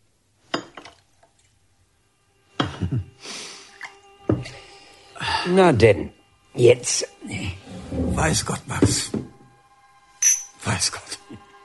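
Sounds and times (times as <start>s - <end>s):
thick long-stemmed glasses clinking and knocking: 0.5s - 1.0s, 2.6s - 2.9s, 10.2s - 10.8s
speech: 2.8s - 3.2s, 5.4s - 7.6s, 8.2s - 9.2s, 10.8s - 11.1s.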